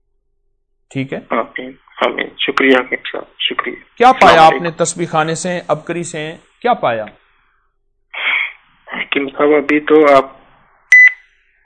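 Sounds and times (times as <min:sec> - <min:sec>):
speech: 0:00.9 - 0:07.2, 0:09.2 - 0:10.4
phone call disconnecting beep: 0:10.9 - 0:11.2.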